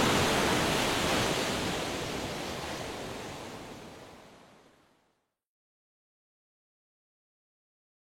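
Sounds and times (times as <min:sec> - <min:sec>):
sea waves: 0:00.0 - 0:05.2.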